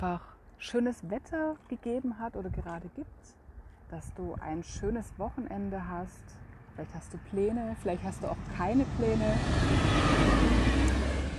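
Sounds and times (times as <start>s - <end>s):
speech: 0.0s - 11.0s
train passing: 7.8s - 11.3s.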